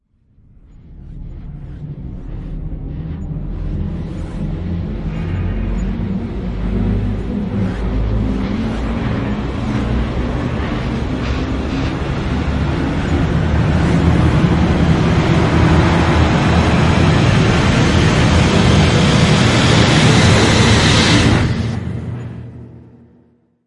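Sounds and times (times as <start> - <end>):
rising sound: 0.2 - 23.0.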